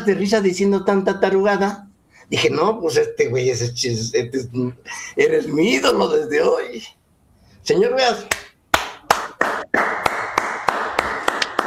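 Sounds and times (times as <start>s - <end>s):
speech: 0.0s - 7.0s, 7.6s - 8.4s
audience applause: 8.8s - 11.6s.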